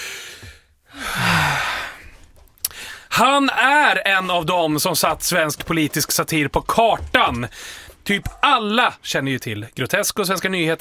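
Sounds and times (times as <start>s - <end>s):
deep breath to catch one's breath: 0.0s - 3.1s
speech: 3.2s - 10.8s.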